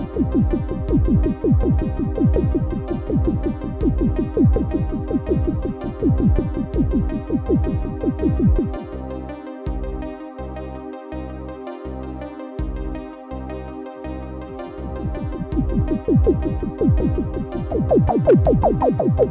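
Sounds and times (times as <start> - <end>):
Casio XW-P1 solo synthesizer: 0.0 - 19.2.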